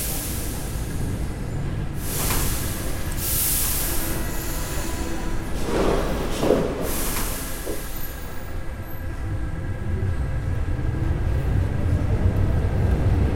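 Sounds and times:
metro train squeals and hisses: 0.0 - 9.2
metro train rumbling roar: 0.0 - 13.3.

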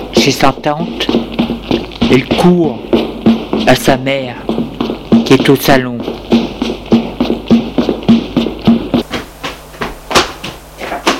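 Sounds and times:
speech: 0.2 - 1.2, 2.1 - 2.9, 3.6 - 4.4, 5.3 - 6.0
knocking on a door: 1.1 - 9.1.

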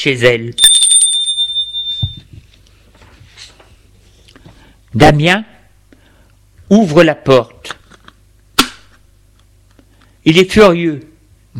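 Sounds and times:
speech: 0.0 - 0.7, 4.9 - 5.5, 6.7 - 7.8, 10.3 - 11.5
doorbell ringing: 0.6 - 2.3.

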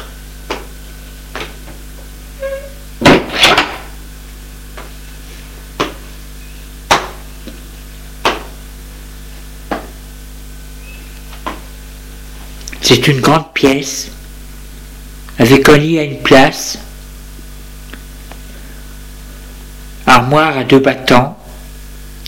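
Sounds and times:
door opening: 2.4 - 3.9
speech: 12.9 - 14.2, 15.4 - 16.8, 20.1 - 21.4.

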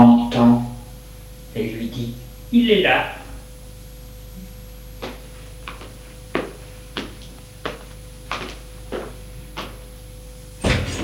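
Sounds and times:
low steady hum: 0.0 - 11.0
speech: 2.0 - 3.2
door opening: 10.6 - 11.0.

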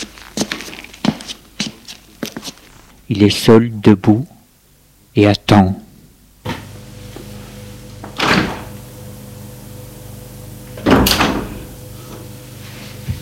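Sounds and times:
speech: 3.1 - 4.4, 5.2 - 5.8
door opening: 8.0 - 8.7, 10.8 - 11.6.

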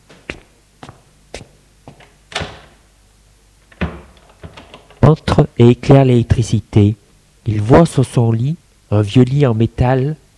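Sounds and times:
hotel room door opening with clicks and knocks: 2.3 - 2.8, 3.7 - 5.1
speech: 5.1 - 10.2.

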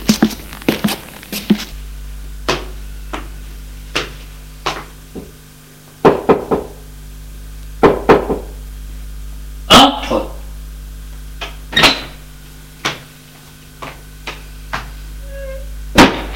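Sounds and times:
low hum: 0.0 - 16.3
knocking on a wooden door: 6.0 - 6.8, 7.8 - 8.5.

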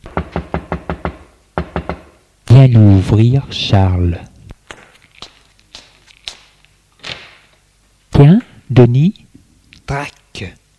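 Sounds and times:
solid knocks on a door: 0.0 - 2.2
speech: 2.6 - 4.3, 8.2 - 9.2, 9.9 - 10.6.

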